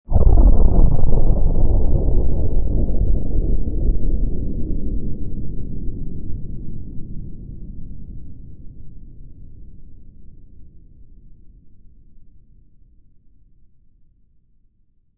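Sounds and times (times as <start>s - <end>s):
distant powerful huge atomic or nuclear explosion: 0.1s - 6.7s.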